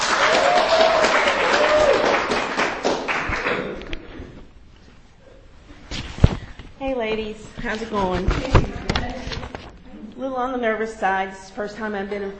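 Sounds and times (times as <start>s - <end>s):
audience applause welcoming a speaker: 0.0s - 4.0s
speech: 7.1s - 8.6s, 10.2s - 12.3s.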